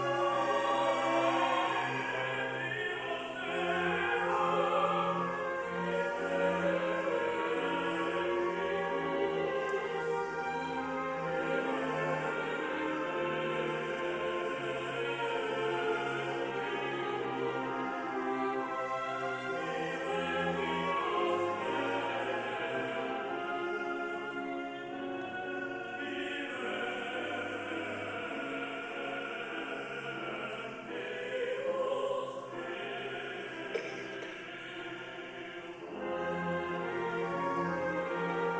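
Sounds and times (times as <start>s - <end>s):
orchestra playing: 0.0s - 29.4s, 32.8s - 38.5s
symphonic choir singing: 0.0s - 38.5s.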